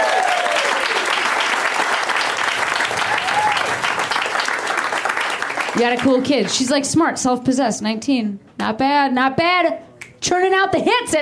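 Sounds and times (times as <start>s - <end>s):
comedy show audience applause: 0.0s - 6.6s
speech: 5.8s - 11.1s.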